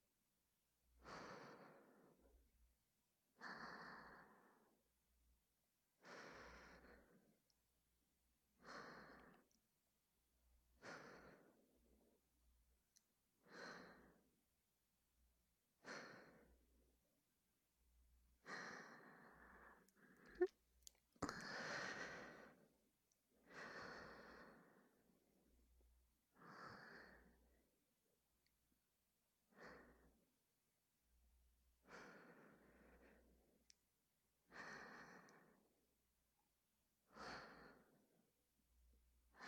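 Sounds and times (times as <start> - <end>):
breathing: 1.0 - 2.3, 3.4 - 4.8, 6.0 - 7.4, 8.6 - 9.6, 10.8 - 11.8, 13.4 - 14.3, 18.4 - 20.5, 21.2 - 22.7, 23.4 - 25.2, 26.3 - 27.6, 29.5 - 30.2, 31.8 - 33.6, 34.5 - 35.7, 37.1 - 38.2.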